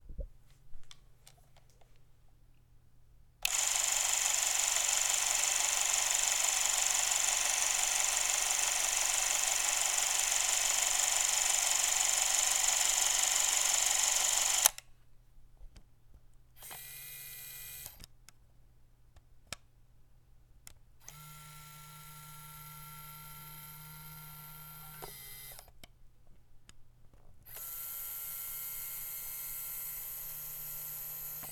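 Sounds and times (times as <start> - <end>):
Super8 camera speed and zoom: 3.4 - 14.8, 16.6 - 18.0, 21.0 - 25.7, 27.5 - 31.5.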